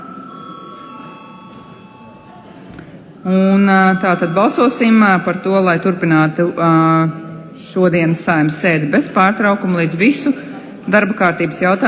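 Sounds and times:
parliament voting bell ringing: 0.0s - 5.8s
low murmur of voices: 0.0s - 11.8s
speech: 3.2s - 11.8s.

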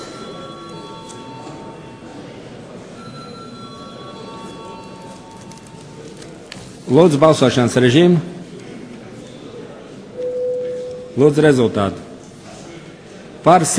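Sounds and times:
parliament chamber electric bell ringing: 0.0s - 5.8s
speech: 6.9s - 8.3s, 11.2s - 12.1s, 13.4s - 13.7s.

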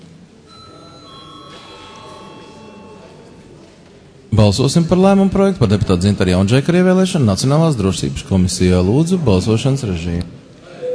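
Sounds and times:
low room murmur: 0.0s - 10.9s
parliament voting bell ringing: 0.5s - 3.6s
speech: 4.4s - 10.4s.

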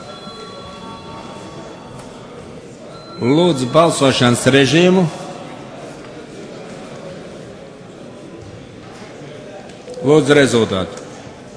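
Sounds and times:
parliament voting bell ringing: 0.0s - 5.0s
speech: 3.2s - 5.2s, 10.1s - 11.0s.

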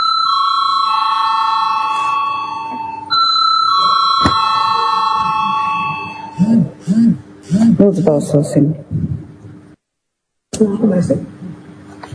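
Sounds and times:
parliament voting bell ringing: 0.0s - 6.5s
speech: 7.8s - 9.2s, 10.6s - 11.3s.

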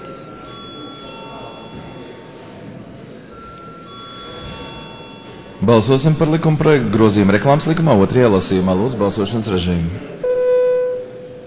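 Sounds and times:
parliament chamber voting bell ringing: 0.0s - 2.5s, 3.3s - 6.9s
murmur of voices: 0.0s - 11.4s
speech: 5.6s - 10.2s.

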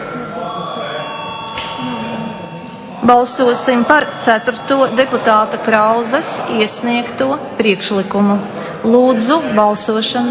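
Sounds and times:
parliament voting bell ringing: 0.0s - 7.3s
low murmur of voices: 0.0s - 10.2s
speech: 3.1s - 10.2s.

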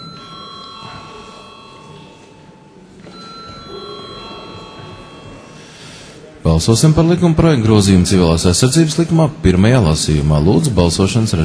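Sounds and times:
electric bell in a parliament chamber calling a vote: 0.0s - 6.0s
speech: 6.6s - 11.4s.

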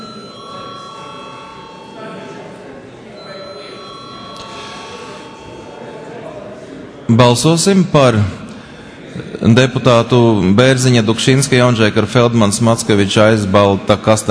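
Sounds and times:
parliament electric voting bell ringing: 0.0s - 6.6s
low murmur of many voices: 0.0s - 14.2s
speech: 7.1s - 8.4s, 9.4s - 14.2s.

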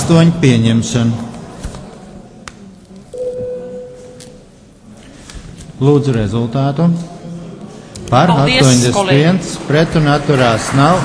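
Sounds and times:
low room murmur: 0.0s - 11.0s
speech: 0.1s - 1.3s, 5.8s - 7.1s, 8.1s - 11.0s
parliament voting bell electronic tone: 3.2s - 4.4s.

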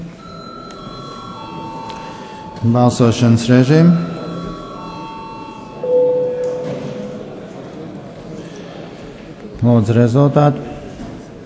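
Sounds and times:
murmur of voices in the chamber: 0.0s - 11.4s
parliament electric voting bell ringing: 0.2s - 7.5s
speech: 2.6s - 4.1s, 9.6s - 10.7s.

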